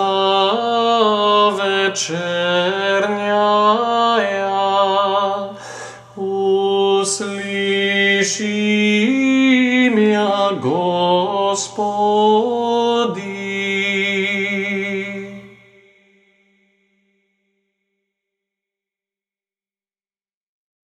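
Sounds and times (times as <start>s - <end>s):
Serbian chant: 0.0s - 16.4s.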